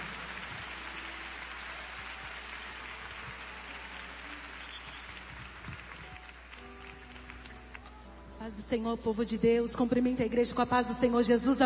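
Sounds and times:
audience clapping: 0:00.0 - 0:08.3
speech: 0:08.5 - 0:11.6.

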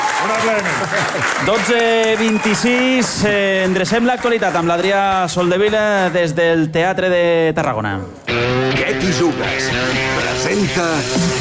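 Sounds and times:
audience applause in the Teatre de Tarragona: 0:00.0 - 0:06.2
speech: 0:00.3 - 0:11.3.

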